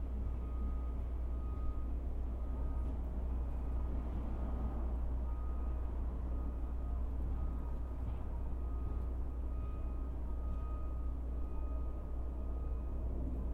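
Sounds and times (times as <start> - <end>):
traffic and machinery rumble: 0.0 - 13.5
faint beeping tones: 0.2 - 2.9, 5.2 - 13.3.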